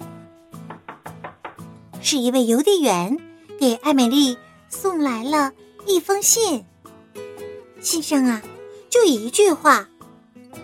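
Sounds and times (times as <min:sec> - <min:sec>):
loud knocking on kitchen door: 0:00.6 - 0:01.7
speech: 0:02.0 - 0:06.7, 0:07.8 - 0:09.9.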